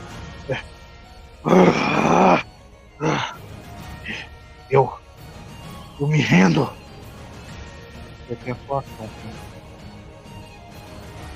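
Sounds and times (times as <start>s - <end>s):
speech: 0.5s - 0.7s, 1.4s - 2.4s, 6.2s - 6.8s, 8.4s - 9.6s
voice imitating a dragon's roar: 1.5s - 2.4s.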